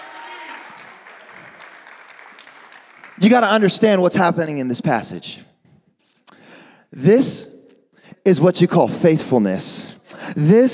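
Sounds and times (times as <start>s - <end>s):
audience applause: 0.0s - 4.0s
speech: 3.2s - 5.5s, 6.9s - 7.5s, 8.2s - 10.7s.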